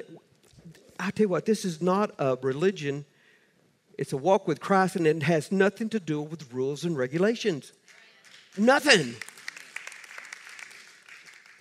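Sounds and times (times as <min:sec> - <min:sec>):
speech: 0:01.0 - 0:03.1, 0:04.0 - 0:07.8, 0:08.5 - 0:09.3
weak scattered clapping from a small crowd: 0:07.8 - 0:11.6.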